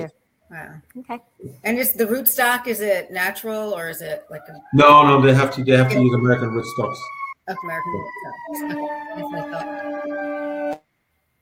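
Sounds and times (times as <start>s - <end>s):
speech: 0.0s - 10.8s
fire engine siren passing by: 4.6s - 10.8s.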